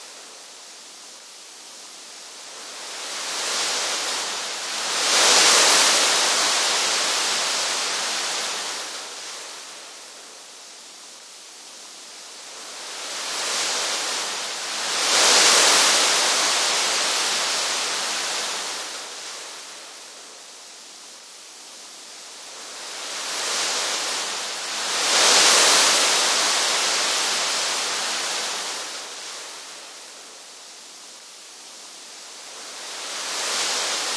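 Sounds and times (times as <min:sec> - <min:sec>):
waves: 0:02.4 - 0:10.6, 0:12.2 - 0:20.6, 0:22.2 - 0:30.6, 0:31.8 - 0:34.1.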